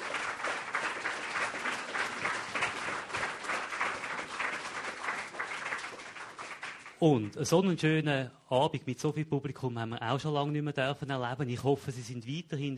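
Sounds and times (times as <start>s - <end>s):
applause from a large audience: 0.0s - 7.0s
speech: 7.0s - 12.7s.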